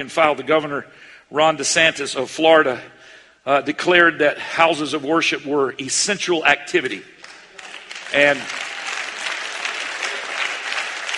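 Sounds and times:
speech: 0.0s - 7.2s, 8.1s - 8.7s
church congregation applause: 7.2s - 11.1s.

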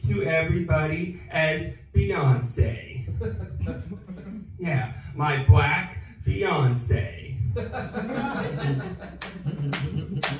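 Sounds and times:
speech: 0.1s - 10.3s
laughter: 3.0s - 4.5s, 7.4s - 10.3s
audience applause: 9.2s - 10.3s.

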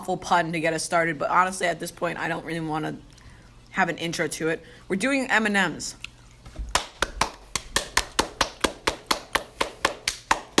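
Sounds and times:
speech: 0.0s - 3.1s, 3.7s - 6.1s
person clapping hands: 6.7s - 10.5s.

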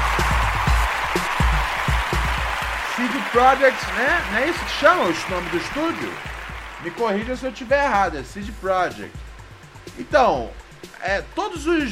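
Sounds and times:
round of applause: 0.0s - 9.0s
speech: 3.0s - 9.2s, 10.0s - 11.9s.

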